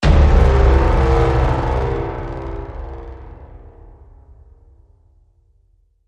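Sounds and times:
blast: 0.0 - 4.6.

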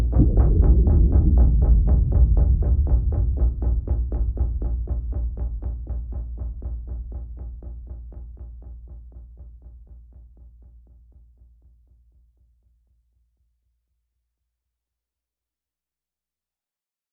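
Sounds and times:
pulses: 0.2 - 7.0
drums: 0.2 - 8.1.

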